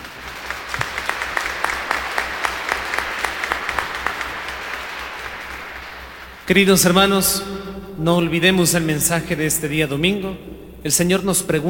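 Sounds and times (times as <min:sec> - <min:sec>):
audience applause: 0:00.0 - 0:07.1
speech: 0:06.5 - 0:11.6.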